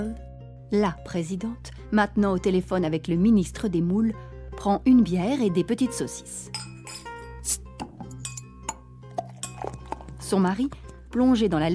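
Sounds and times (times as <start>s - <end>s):
speech: 0.0s - 6.6s, 10.3s - 11.7s
glasses and dishes clinking on a drinks trolley: 6.5s - 10.2s.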